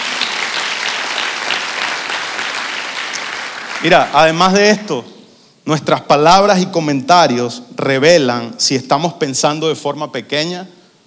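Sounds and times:
audience applause: 0:00.0 - 0:04.6
speech: 0:03.8 - 0:10.8.

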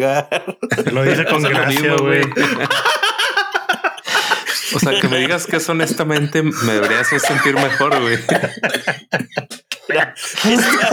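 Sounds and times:
speech: 0:00.0 - 0:03.0, 0:04.7 - 0:10.9
laughter: 0:00.0 - 0:10.9
person coughing: 0:05.9 - 0:09.6.

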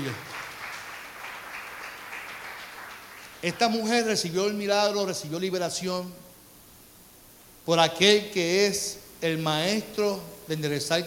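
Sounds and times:
audience applause: 0:00.0 - 0:03.7
speech: 0:03.4 - 0:06.3, 0:07.7 - 0:11.0.

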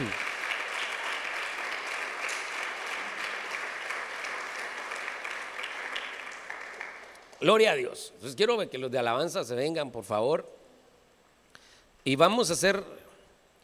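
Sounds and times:
audience applause: 0:00.0 - 0:07.4
speech: 0:07.4 - 0:10.6, 0:12.0 - 0:13.0.

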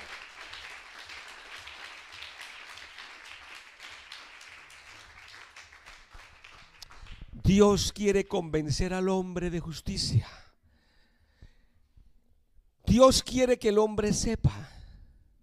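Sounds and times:
audience applause: 0:00.0 - 0:07.3
speech: 0:07.5 - 0:10.4, 0:13.0 - 0:14.7.

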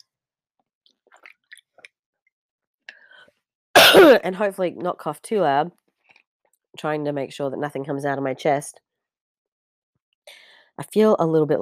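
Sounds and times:
big swig of water being drunk: 0:01.1 - 0:01.9
speech: 0:04.0 - 0:05.8, 0:06.8 - 0:08.8, 0:10.3 - 0:11.6.

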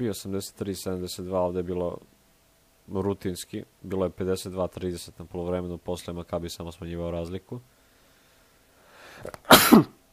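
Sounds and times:
speech: 0:00.0 - 0:02.2, 0:02.9 - 0:07.8, 0:09.2 - 0:10.0
sports commentator sneezing: 0:09.2 - 0:10.0.

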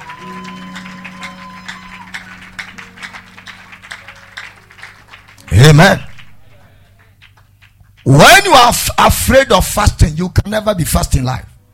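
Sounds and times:
congregation clapping at a convention church service: 0:00.0 - 0:08.9
speech: 0:05.7 - 0:06.1, 0:08.1 - 0:11.5.

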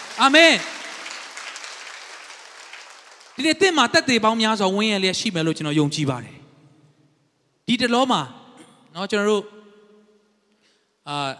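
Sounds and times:
church congregation clapping in praise during a Sunday afternoon sermon: 0:00.0 - 0:04.1
speech: 0:00.2 - 0:00.8, 0:03.4 - 0:06.4, 0:07.7 - 0:09.6, 0:11.1 - 0:11.3.

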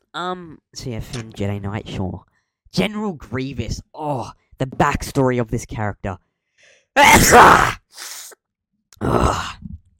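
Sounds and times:
speech: 0:00.2 - 0:08.3
person sneezing: 0:07.0 - 0:08.4.

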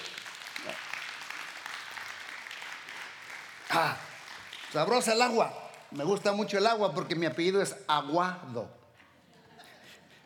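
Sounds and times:
audience applauding: 0:00.0 - 0:07.6
speech: 0:03.8 - 0:04.0, 0:04.7 - 0:08.8.

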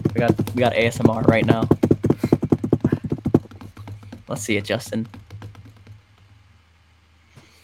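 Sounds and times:
typing on a computer keyboard: 0:00.0 - 0:06.0
speech: 0:00.2 - 0:01.8, 0:04.3 - 0:05.2.

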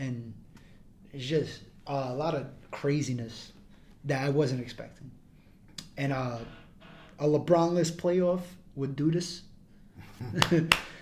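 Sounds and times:
speech: 0:01.2 - 0:05.2, 0:06.0 - 0:06.6, 0:07.2 - 0:09.5, 0:10.2 - 0:10.9
hand claps: 0:10.4 - 0:11.0.

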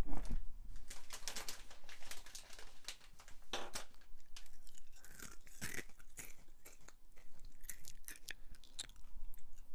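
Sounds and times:
wrapper crinkles: 0:00.1 - 0:07.9
crunching crisps and chocolate: 0:00.7 - 0:09.7.

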